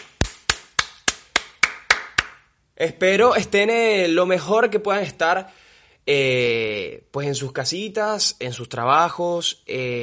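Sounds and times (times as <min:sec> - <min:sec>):
hand clapping: 0:00.0 - 0:02.5
speech: 0:02.8 - 0:10.0.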